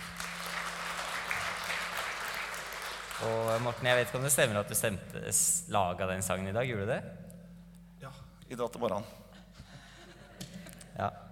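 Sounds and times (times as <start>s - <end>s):
applause: 0.0s - 4.6s
speech: 3.2s - 7.3s, 8.0s - 9.2s, 11.0s - 11.2s.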